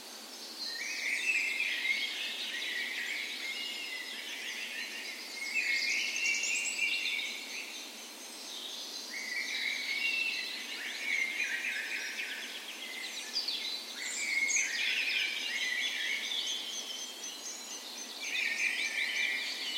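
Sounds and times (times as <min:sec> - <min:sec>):
dawn chorus of many birds: 0:00.0 - 0:19.7.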